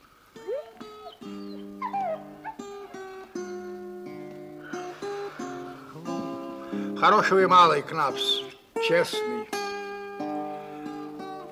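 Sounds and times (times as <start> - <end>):
dog whimpering and whining: 0.4 - 3.4
speech: 7.0 - 9.6.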